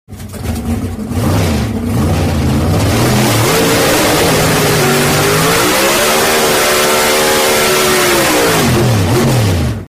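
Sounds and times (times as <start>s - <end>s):
Pro Stock car burnout: 0.2s - 9.9s.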